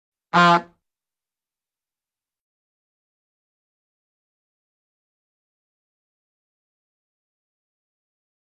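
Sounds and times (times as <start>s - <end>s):
short bulb horn honk: 0.4s - 0.8s.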